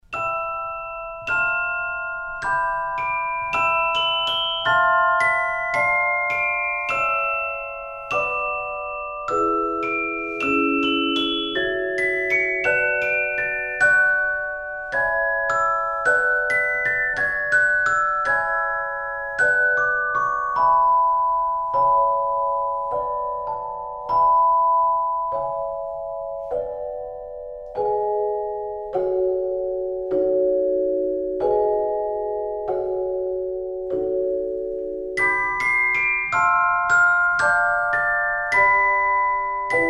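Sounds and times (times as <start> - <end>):
celesta solo: 0.0 - 39.8.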